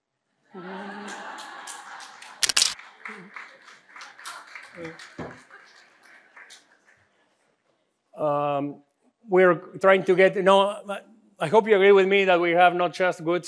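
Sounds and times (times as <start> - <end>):
laughter: 0.5 - 6.8
smartphone camera shutter click taking a selfie: 2.4 - 2.8
speech: 4.8 - 5.5, 8.2 - 13.4.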